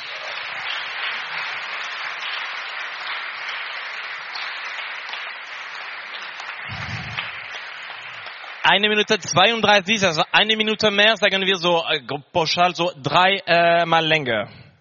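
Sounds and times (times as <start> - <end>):
audience applause: 0.0 - 9.9
speech: 8.7 - 14.6.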